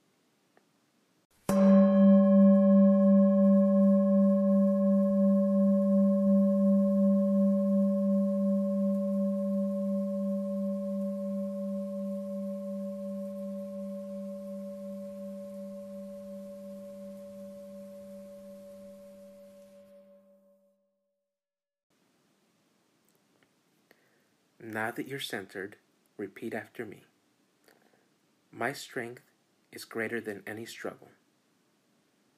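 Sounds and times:
meditation bell ringing: 1.5s - 20.7s
speech: 24.8s - 27.1s, 28.6s - 31.2s.

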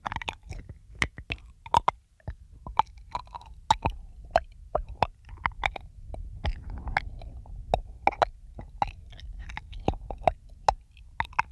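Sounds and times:
wet mouth clicks and smacks: 0.0s - 11.5s
low rumble: 3.6s - 11.2s.

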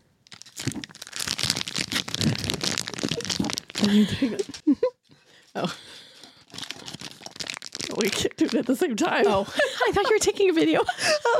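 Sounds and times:
crinkling and crumpling for ASMR: 0.2s - 4.7s, 5.4s - 9.4s
speech: 3.8s - 4.9s, 5.6s - 6.0s, 8.0s - 11.3s.

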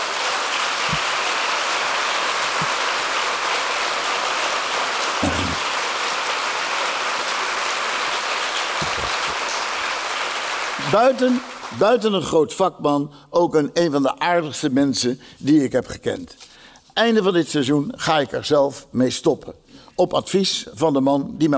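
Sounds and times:
audience applause: 0.0s - 11.8s
speech: 10.9s - 16.4s, 17.0s - 21.5s.

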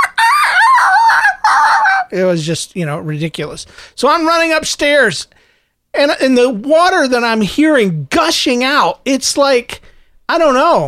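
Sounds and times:
person's voice imitating a stepped-on dog yelping: 0.0s - 2.2s
speech: 2.1s - 10.8s.

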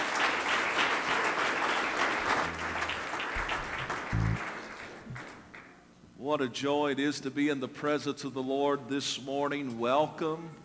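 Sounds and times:
audience clapping: 0.0s - 5.7s
speech: 6.3s - 10.6s.

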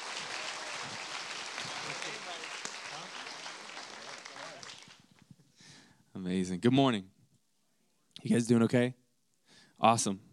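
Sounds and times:
Renew Life Church congregation applauding a guest speaker: 0.0s - 5.3s
speech: 6.2s - 7.2s, 8.2s - 9.0s, 9.8s - 10.3s.

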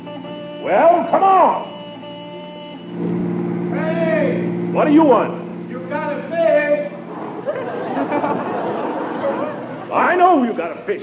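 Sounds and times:
car horn honking: 0.0s - 7.1s
speech: 0.6s - 1.7s, 4.8s - 5.4s, 9.9s - 11.0s
laughter: 7.0s - 11.0s.

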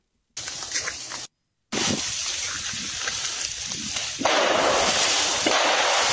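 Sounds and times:
ice-laden trees snapping: 1.8s - 6.1s.

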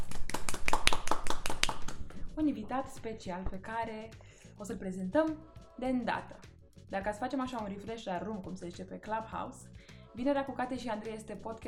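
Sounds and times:
small group applauding: 0.0s - 2.2s
speech: 2.4s - 11.6s.

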